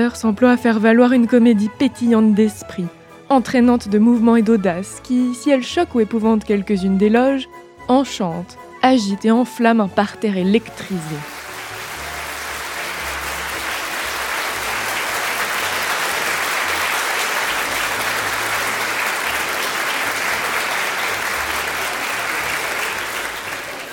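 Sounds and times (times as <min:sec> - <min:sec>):
speech: 0:00.0 - 0:11.4
prolonged theatre audience applause: 0:11.1 - 0:23.9.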